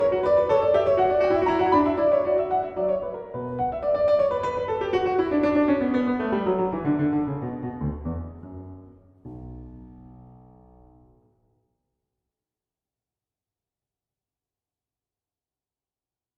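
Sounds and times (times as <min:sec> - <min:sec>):
keyboard sonata in B minor: 0:00.0 - 0:11.2.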